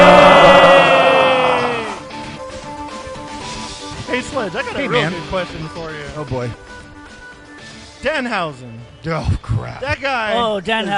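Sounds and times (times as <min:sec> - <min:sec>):
crowd cheering: 0:00.0 - 0:02.1
speech: 0:04.4 - 0:06.7, 0:08.0 - 0:10.9.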